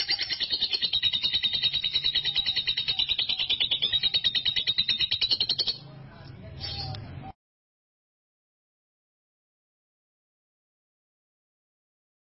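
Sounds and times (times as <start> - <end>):
canary master song for training canaries: 0.0 - 7.3.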